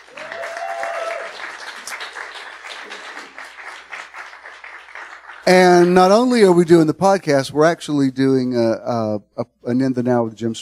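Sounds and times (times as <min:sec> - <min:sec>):
audience clapping at a live event in Atlanta's Kirkwood neighborhood: 0:00.0 - 0:07.0
speech: 0:05.5 - 0:10.6.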